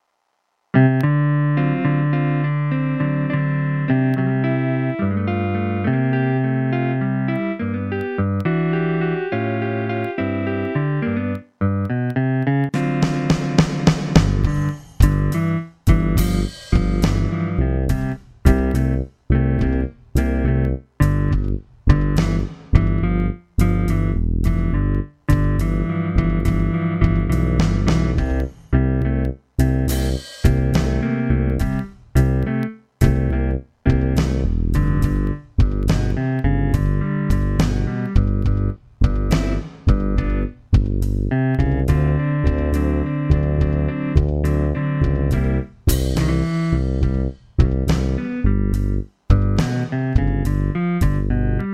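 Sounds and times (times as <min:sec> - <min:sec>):
blues music: 0:00.8 - 0:51.7.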